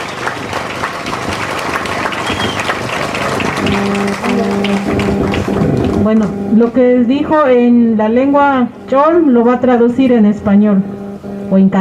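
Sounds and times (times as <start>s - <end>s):
audience applause: 0.0s - 6.1s
speech: 6.0s - 11.8s.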